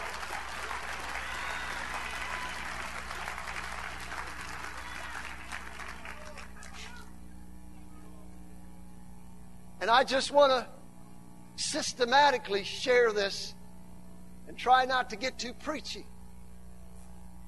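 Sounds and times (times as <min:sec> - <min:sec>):
audience clapping hands: 0:00.0 - 0:07.1
speech: 0:09.8 - 0:10.8, 0:11.7 - 0:13.6, 0:14.5 - 0:16.1.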